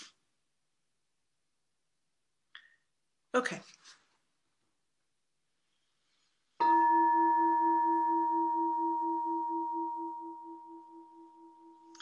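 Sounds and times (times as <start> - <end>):
speech: 3.3 - 4.0
single bell strike ringing: 6.6 - 11.9.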